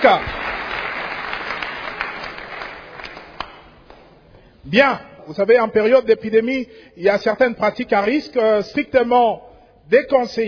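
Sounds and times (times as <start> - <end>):
speech: 0.0 - 0.3, 4.7 - 10.4
audience applause: 0.0 - 3.8.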